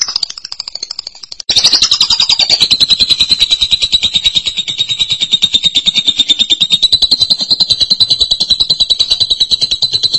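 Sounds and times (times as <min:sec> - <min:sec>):
lovebird buzzy trill: 0:00.0 - 0:10.1.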